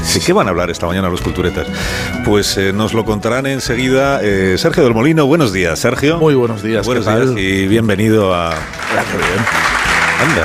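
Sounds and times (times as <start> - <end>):
speech: 0.1 - 10.4
spontaneous audience applause: 8.5 - 10.4.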